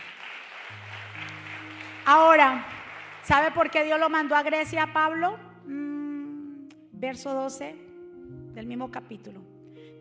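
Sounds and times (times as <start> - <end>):
loud applause from a large crowd: 0.0 - 3.5
speech: 2.1 - 5.8, 7.0 - 7.8, 8.5 - 9.9.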